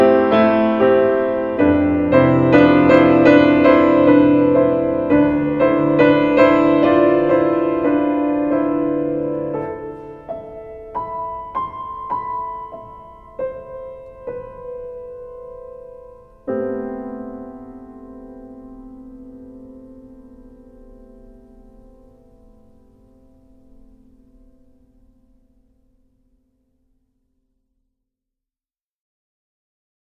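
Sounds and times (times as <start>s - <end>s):
piano piece: 0.0s - 26.5s.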